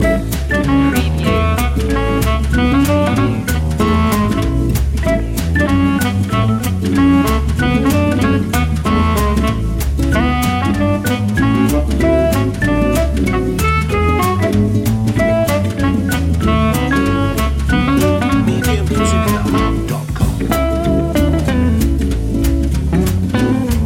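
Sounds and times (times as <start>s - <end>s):
jazz Christmas carol: 0.0s - 23.8s.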